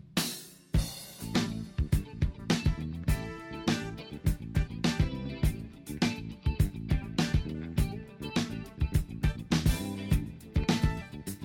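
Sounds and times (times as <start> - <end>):
funk music: 0.2 - 11.4.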